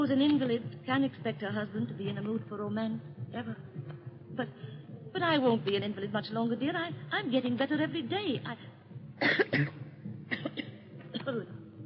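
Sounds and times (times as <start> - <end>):
speech: 0.0 - 9.8, 11.3 - 11.6
woman coughing: 9.2 - 11.4.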